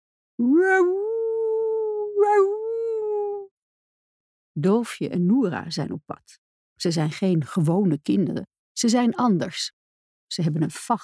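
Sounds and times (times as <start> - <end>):
speech: 0.4 - 1.1, 4.6 - 11.0
animal howling at night: 0.4 - 3.5.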